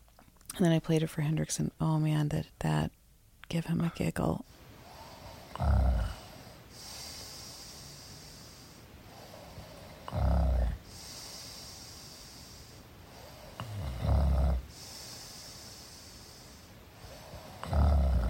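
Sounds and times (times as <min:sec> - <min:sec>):
speech: 0:00.6 - 0:04.6, 0:05.6 - 0:06.2
recorded person snoring at night: 0:04.9 - 0:18.2.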